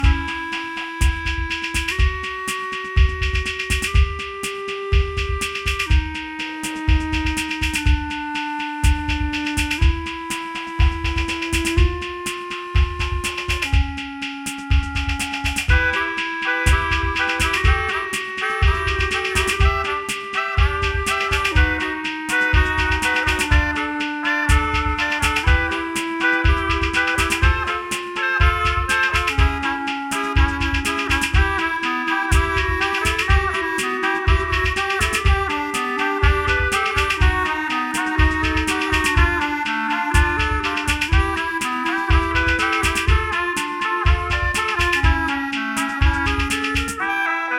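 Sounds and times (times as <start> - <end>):
electro pop klezmer music: 0.0 - 47.4.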